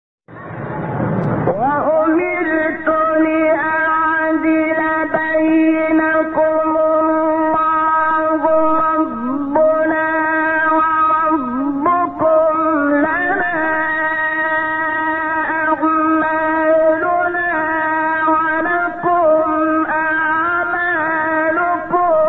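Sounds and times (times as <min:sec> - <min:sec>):
recitation of a verse: 0:01.4 - 0:22.2.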